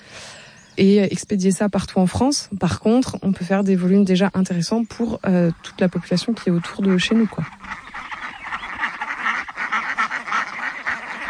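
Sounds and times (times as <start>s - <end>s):
speech: 0.8s - 7.8s
Indian runner ducks quacking: 3.8s - 11.2s.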